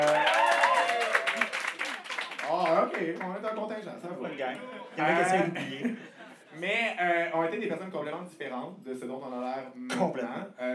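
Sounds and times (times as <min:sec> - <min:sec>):
audience applauding: 0:00.0 - 0:03.7
speech: 0:03.0 - 0:10.7.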